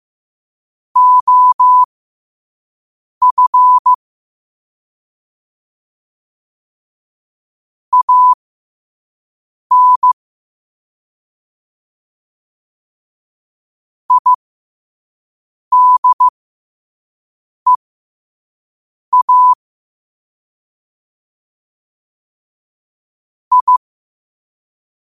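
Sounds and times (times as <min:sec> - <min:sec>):
morse code at 5 wpm: 0:01.0 - 0:01.9, 0:03.2 - 0:04.0, 0:07.9 - 0:08.4, 0:09.7 - 0:10.2, 0:14.1 - 0:14.4, 0:15.7 - 0:16.3, 0:19.1 - 0:19.6, 0:23.5 - 0:23.8.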